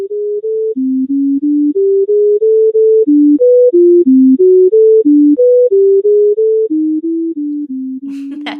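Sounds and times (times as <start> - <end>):
stream of synthesized musical tones: 0.0 - 8.5.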